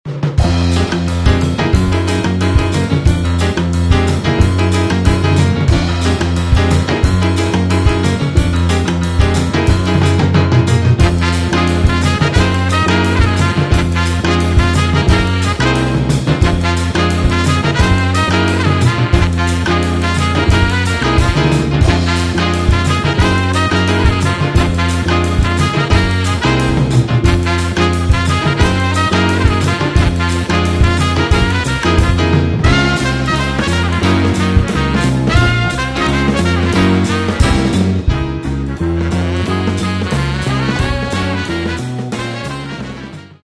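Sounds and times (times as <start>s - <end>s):
funky jazz: 0.1s - 43.4s.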